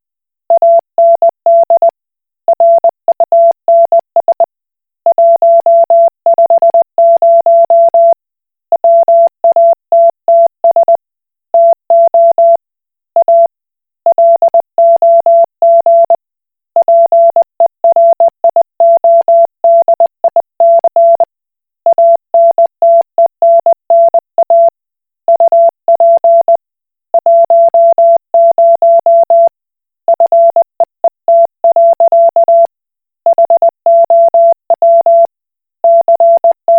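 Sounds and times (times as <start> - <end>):
Koch Morse code beeps: 0.5 - 1.9, 2.6 - 4.4, 5.1 - 8.1, 8.8 - 10.9, 11.5 - 12.6, 13.2 - 13.5, 14.1 - 16.2, 16.8 - 17.3, 17.9 - 21.3, 21.9 - 24.7, 25.3 - 26.6, 27.2 - 29.5, 30.1 - 30.6, 31.3 - 32.7, 33.3 - 35.3, 35.9 - 36.7.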